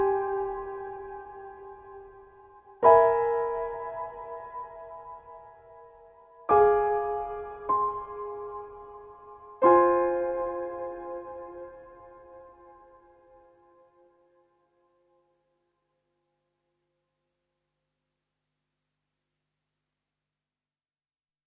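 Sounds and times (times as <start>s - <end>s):
piano: 0.0s - 15.5s.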